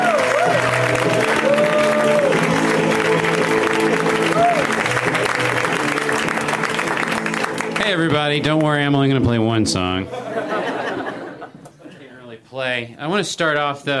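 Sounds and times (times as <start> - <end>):
crowd whoops and cheers: 0.0 - 8.6
audience applause: 0.0 - 8.8
speech: 8.3 - 10.2, 12.6 - 13.9
laughter: 10.1 - 12.2.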